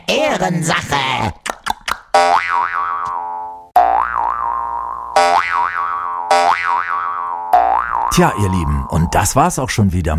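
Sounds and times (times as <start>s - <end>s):
speech: 0.1s - 1.5s, 8.1s - 10.1s
springy boing sounds played on a jaw harp as a hopping effect: 2.1s - 9.2s.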